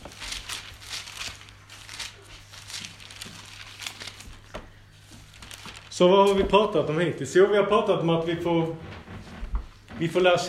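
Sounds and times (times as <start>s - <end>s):
book pages being flipped forward: 0.0s - 6.9s
speech: 6.0s - 8.9s, 10.0s - 10.4s.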